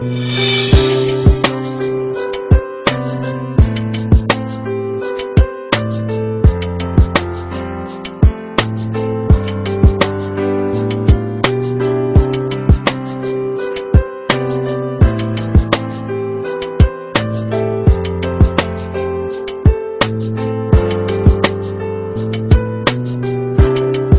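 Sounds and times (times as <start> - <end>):
jazz beat: 0.0 - 24.1.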